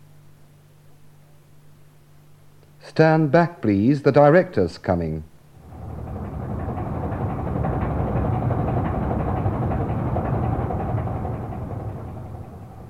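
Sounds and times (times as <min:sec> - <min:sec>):
speech: 0:02.8 - 0:05.3
bus engine idling: 0:05.6 - 0:12.8.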